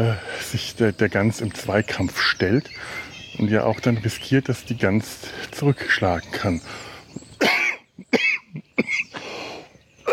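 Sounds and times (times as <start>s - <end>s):
speech: 0.0s - 7.5s
person coughing after swallowing the wrong way: 7.4s - 9.1s.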